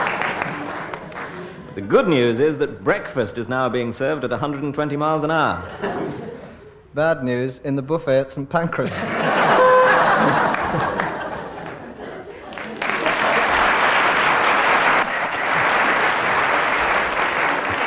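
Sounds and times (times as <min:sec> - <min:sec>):
audience applause on a comedy panel game: 0:00.0 - 0:01.6, 0:09.6 - 0:17.8
speech: 0:01.8 - 0:06.3, 0:06.9 - 0:09.6, 0:10.2 - 0:10.9
laughter: 0:05.6 - 0:06.7, 0:08.8 - 0:16.4.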